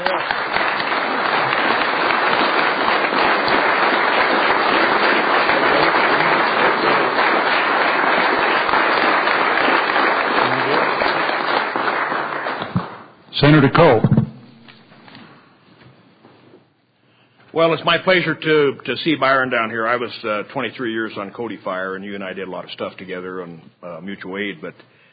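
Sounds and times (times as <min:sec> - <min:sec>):
applause from a large group in the Senate chamber: 0:00.0 - 0:13.0
speech: 0:13.4 - 0:14.2, 0:17.6 - 0:25.0.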